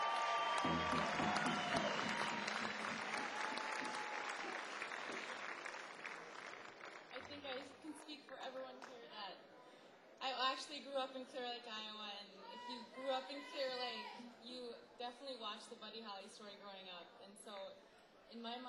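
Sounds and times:
audience applause: 0.0 - 7.9
speech: 8.1 - 9.5, 10.2 - 18.6.

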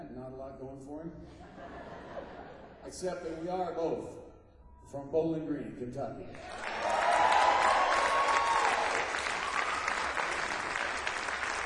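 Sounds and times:
speech: 0.3 - 4.3, 4.9 - 7.0
laughter: 1.3 - 3.4
cheers and whoops: 6.4 - 11.0
audience applause: 6.4 - 11.6.

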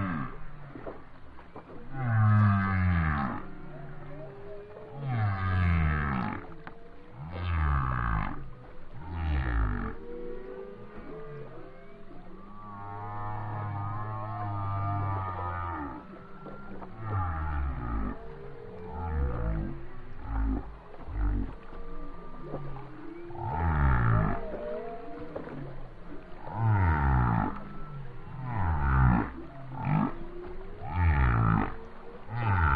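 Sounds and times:
whale song: 0.0 - 32.7.

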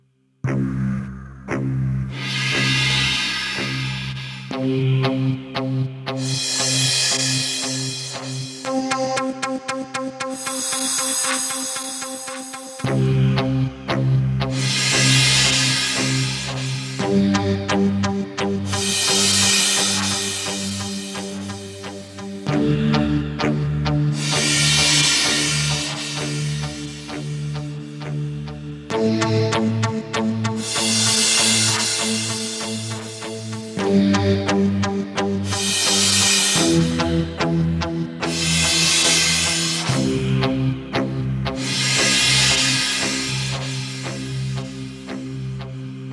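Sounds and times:
Kawai K1 synthesizer preset Arab Sabre: 0.4 - 46.1.

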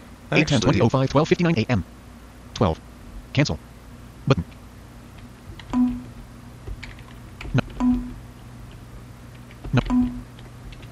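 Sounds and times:
speech: 0.3 - 2.0, 2.6 - 4.6
typing on a computer keyboard: 5.2 - 10.9.

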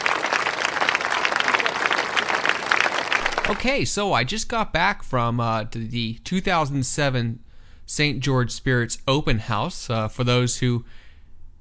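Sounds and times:
applause from a crowd: 0.0 - 3.8
speech: 3.5 - 11.0.

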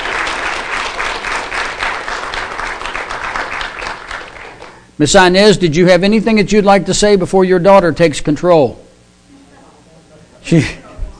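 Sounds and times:
audience round of applause: 0.0 - 4.8
speech: 5.0 - 8.8, 10.4 - 11.1.

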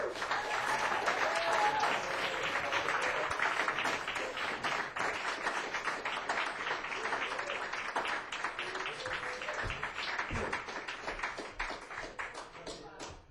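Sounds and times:
audience applause: 0.0 - 13.1.

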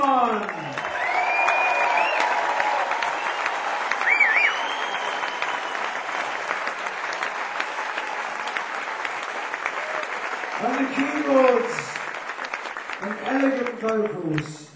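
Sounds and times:
large audience applause welcoming a saxophonist: 0.0 - 14.6
short high whistles: 0.9 - 6.6.

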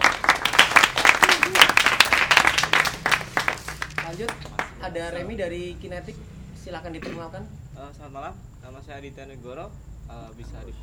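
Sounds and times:
audience applause: 0.0 - 4.8
speech: 4.1 - 10.8.

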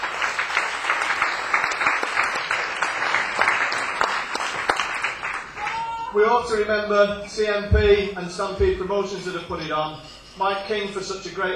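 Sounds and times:
audience applause for bar staff: 0.0 - 6.1
speech: 6.2 - 11.5.

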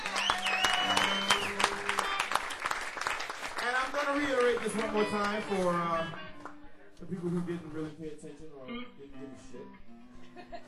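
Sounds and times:
audience applause: 0.0 - 6.6
speech: 4.2 - 6.2, 7.0 - 10.6
laughter: 10.1 - 10.6.

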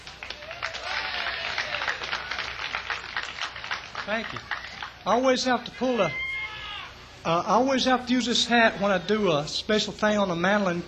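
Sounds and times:
audience clapping for a mandolin player's introduction at a live show: 0.0 - 5.0
speech: 4.1 - 6.2, 7.2 - 10.8.

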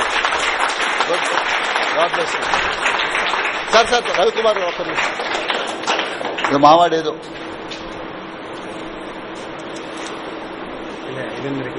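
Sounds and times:
audience applause at a public address event: 0.0 - 7.1
speech: 2.0 - 2.9, 3.7 - 5.3, 6.5 - 7.4, 11.1 - 11.7.

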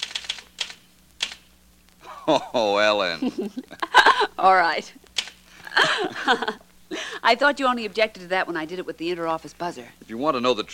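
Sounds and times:
typing keystrokes: 0.0 - 1.4
laughter: 2.0 - 4.6, 5.6 - 7.3
speech: 2.3 - 5.0, 5.8 - 10.7.

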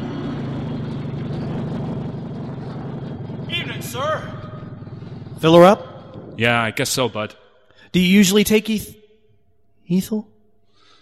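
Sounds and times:
heavy convertible engine rumbling on gravel at a gasoline station in Brentwood, New Jersey: 0.0 - 5.5
speech: 3.8 - 4.4, 5.4 - 9.0, 9.9 - 10.3.

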